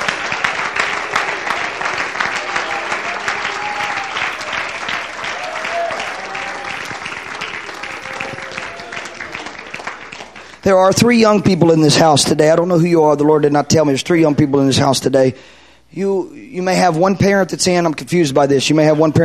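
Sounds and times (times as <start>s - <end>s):
audience clapping: 0.0s - 11.4s
speech: 10.7s - 19.2s.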